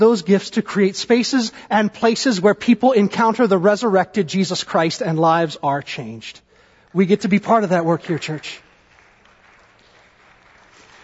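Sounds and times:
speech: 0.0s - 8.6s
audience applause for a tithing sermon: 8.2s - 11.0s.

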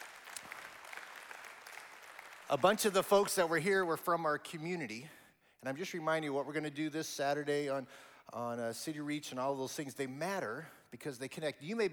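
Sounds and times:
audience applause: 0.0s - 3.1s
speech: 2.5s - 11.9s.

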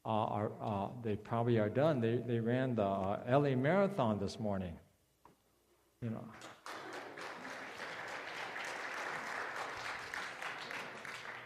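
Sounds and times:
speech: 0.0s - 4.8s, 6.0s - 6.6s
audience applauding: 6.4s - 11.4s.

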